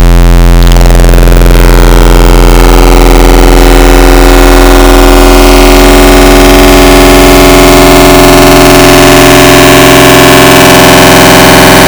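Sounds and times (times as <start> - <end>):
harmonic square FM wavetable synth tone: 0.0 - 11.8.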